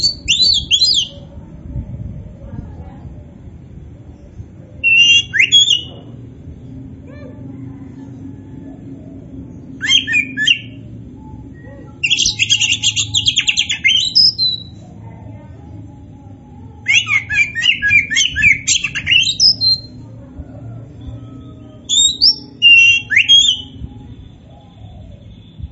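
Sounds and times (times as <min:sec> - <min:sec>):
Oriental magpie-robin song of whistles and chatter: 0:00.0 - 0:01.3, 0:04.8 - 0:06.0, 0:09.6 - 0:14.9, 0:16.8 - 0:20.0, 0:21.0 - 0:25.7
low rumbling background: 0:00.0 - 0:25.7.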